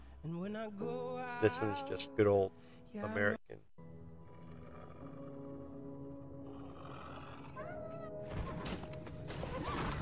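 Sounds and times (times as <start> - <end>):
speech: 0.2 - 3.9
Clydesdale horse whinnying in a commercial: 6.8 - 10.0.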